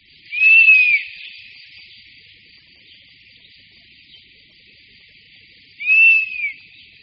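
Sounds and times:
faint steady hiss: 0.0s - 7.0s
European honey buzzard mournful whistles: 0.3s - 1.2s, 5.8s - 6.6s.

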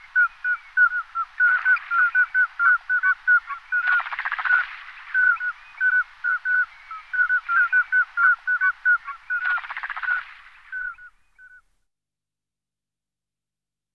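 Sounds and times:
Common scoter piping whistles: 0.0s - 11.7s.

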